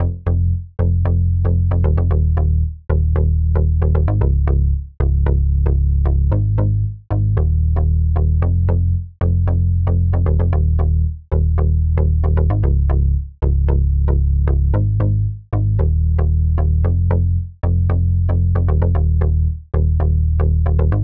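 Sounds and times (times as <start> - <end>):
donk bass in F minor: 0.0 - 21.0.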